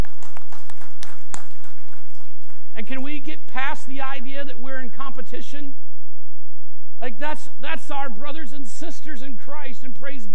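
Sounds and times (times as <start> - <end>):
audience applauding with scattered irregular hand claps: 0.0 - 2.8
speech: 2.8 - 5.9, 7.0 - 10.3.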